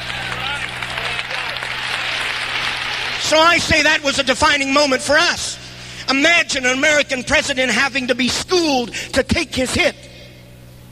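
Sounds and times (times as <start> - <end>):
audience clapping hands: 0.0 - 3.8
speech: 3.3 - 10.1.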